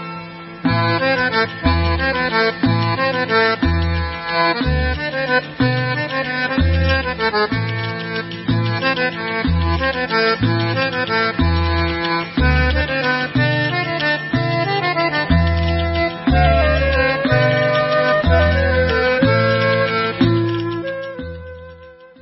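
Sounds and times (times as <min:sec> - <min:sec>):
instrumental Israeli dance music: 0:00.7 - 0:22.1.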